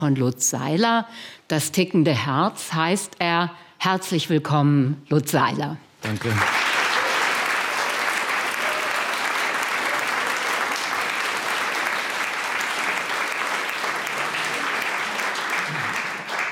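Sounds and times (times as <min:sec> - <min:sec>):
speech: 0:00.0 - 0:06.6
audience applauding and cheering at a literary colloquium: 0:06.0 - 0:16.5.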